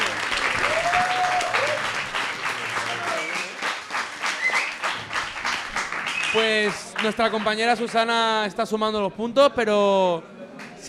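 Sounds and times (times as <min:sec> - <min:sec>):
applause: 0:00.0 - 0:08.3
speech: 0:06.4 - 0:10.8.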